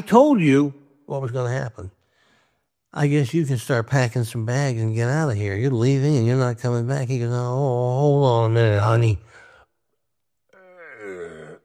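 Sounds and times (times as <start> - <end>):
speech: 0.0 - 2.0, 2.9 - 9.4
man imitating a drunken burp: 10.6 - 11.6.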